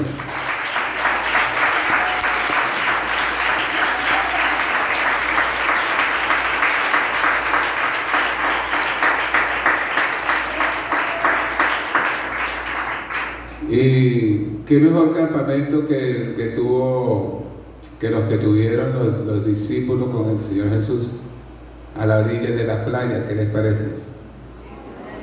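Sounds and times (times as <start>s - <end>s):
audience applause: 0.0s - 13.6s
speech: 14.7s - 17.4s, 18.0s - 21.2s, 22.0s - 24.1s.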